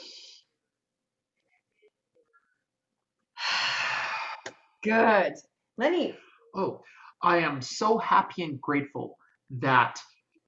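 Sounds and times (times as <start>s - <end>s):
airy breath during a guided breathing exercise: 3.4s - 4.6s
speech: 4.8s - 10.1s.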